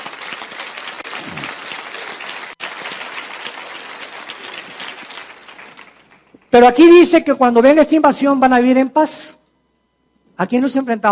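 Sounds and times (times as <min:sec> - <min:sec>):
audience clapping: 0:00.0 - 0:06.5
speech: 0:06.5 - 0:09.4, 0:10.4 - 0:11.1.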